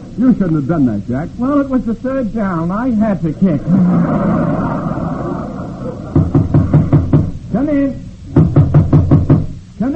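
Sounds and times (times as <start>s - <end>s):
speech: 0.2s - 5.0s, 7.6s - 8.1s
laughter: 3.2s - 6.4s
knocking on a door: 6.1s - 7.4s, 8.3s - 9.6s.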